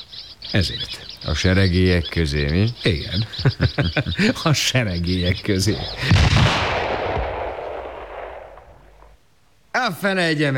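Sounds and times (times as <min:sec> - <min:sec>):
speech: 0:00.5 - 0:06.8, 0:09.9 - 0:10.5
laughter: 0:02.0 - 0:06.4
rifle shot fired at a flock of starlings: 0:06.0 - 0:09.2.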